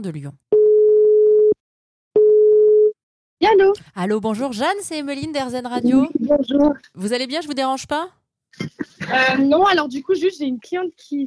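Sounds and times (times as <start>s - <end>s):
speech: 0.0s - 0.5s, 3.4s - 11.2s
telephone ringing tone while placing a call: 0.5s - 1.6s, 2.2s - 3.0s.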